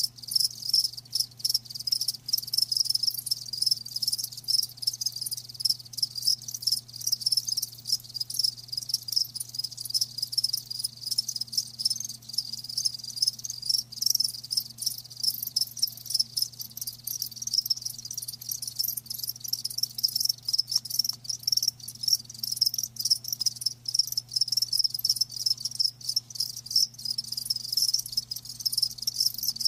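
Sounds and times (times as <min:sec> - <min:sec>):
crickets chirping: 0:00.0 - 0:29.6.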